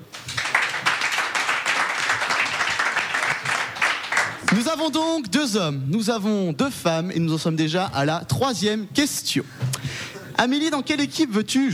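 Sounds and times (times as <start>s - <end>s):
audience applause: 0.1s - 4.7s
speech: 4.6s - 11.7s.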